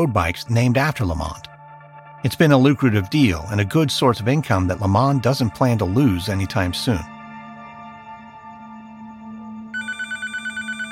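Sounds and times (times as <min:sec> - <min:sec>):
speech: 0:00.0 - 0:01.5, 0:02.2 - 0:07.2
telephone ringing with electronic trill: 0:09.7 - 0:10.9.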